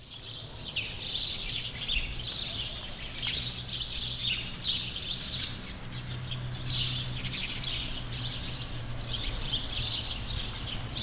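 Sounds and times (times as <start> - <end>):
sparrows chirping: 0.0 - 11.0.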